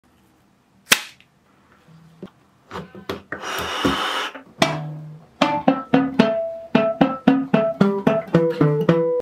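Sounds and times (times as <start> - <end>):
guitar: 2.7 - 9.1
banjo: 4.6 - 9.1.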